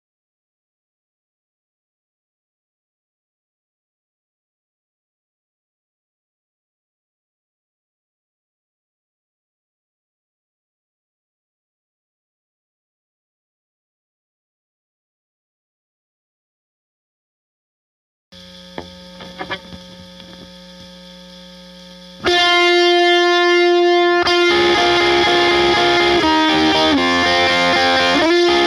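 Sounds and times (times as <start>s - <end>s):
chorus lead synth: 18.7s - 20.5s, 22.0s - 28.6s.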